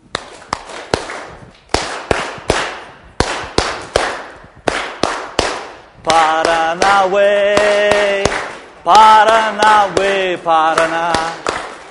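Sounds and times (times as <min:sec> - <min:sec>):
rhythmic hand clapping: 0:00.1 - 0:11.8
speech: 0:06.1 - 0:08.0, 0:08.8 - 0:11.4.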